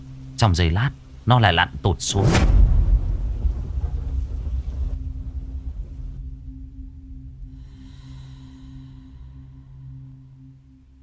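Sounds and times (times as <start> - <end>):
speech: 0.4 - 2.6
thunder at sea: 2.2 - 7.2
heavy rain at sea: 2.7 - 6.8.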